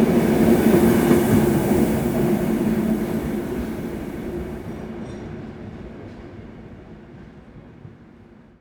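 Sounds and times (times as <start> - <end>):
train starting to roll: 0.0 - 5.4.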